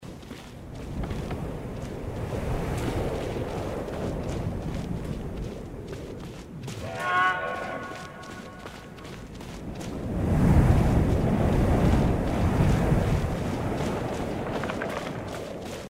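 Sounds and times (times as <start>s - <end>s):
footsteps compared: 0.0s - 15.8s.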